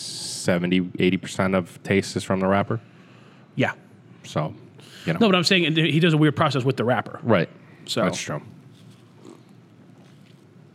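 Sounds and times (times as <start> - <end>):
speech: 0.4 - 3.0, 3.6 - 8.6
person sipping cream soda: 8.7 - 10.7.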